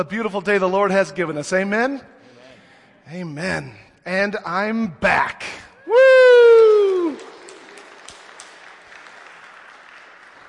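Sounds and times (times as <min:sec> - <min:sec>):
speech: 0:00.0 - 0:02.2, 0:03.1 - 0:06.3
audience clapping: 0:06.3 - 0:10.4.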